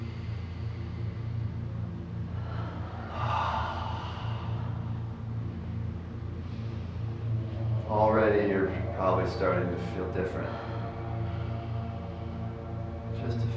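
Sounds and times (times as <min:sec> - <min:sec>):
deep breath during a guided breathing exercise: 0:00.0 - 0:08.0, 0:10.4 - 0:13.2
low hum: 0:00.0 - 0:13.5
speech: 0:08.4 - 0:10.7.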